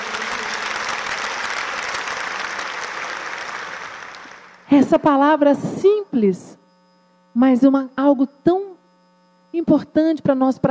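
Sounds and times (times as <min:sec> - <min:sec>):
strong applause from audience: 0:00.0 - 0:04.7
speech: 0:04.7 - 0:06.6, 0:07.4 - 0:08.7, 0:09.6 - 0:10.6.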